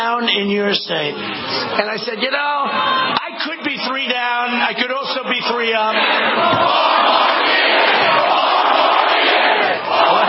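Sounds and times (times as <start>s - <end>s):
speech: 0.0s - 8.4s
large crowd cheering at airport rally: 1.6s - 10.2s.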